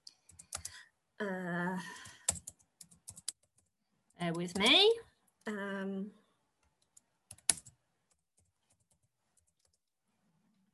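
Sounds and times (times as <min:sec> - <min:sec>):
typing on a computer keyboard: 0:00.2 - 0:00.8, 0:02.0 - 0:04.8, 0:06.7 - 0:09.9
speech: 0:01.2 - 0:02.0, 0:04.2 - 0:06.2.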